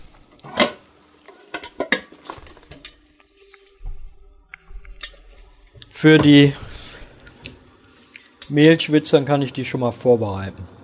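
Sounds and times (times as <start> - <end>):
metal cooking pot clanking and scraping as it is lifted and set down: 0.4 - 3.0
speech: 6.0 - 6.6, 8.5 - 10.8.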